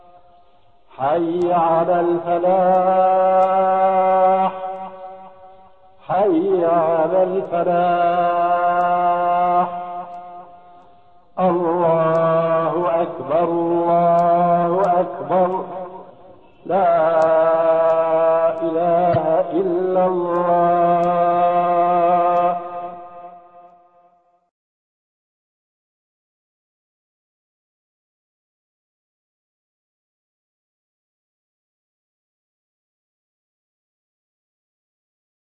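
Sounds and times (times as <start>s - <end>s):
adzan call to prayer: 0.0s - 24.0s.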